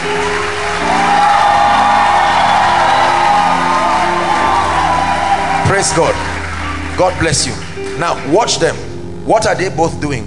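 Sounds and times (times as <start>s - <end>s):
large audience clapping: 0.0s - 8.8s
whoops and shouts: 0.8s - 6.4s
speech: 5.8s - 6.3s, 7.0s - 10.2s.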